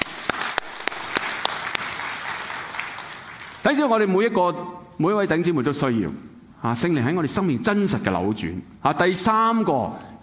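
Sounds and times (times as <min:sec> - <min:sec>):
audience applause: 0:00.0 - 0:03.6
speech: 0:03.6 - 0:10.2.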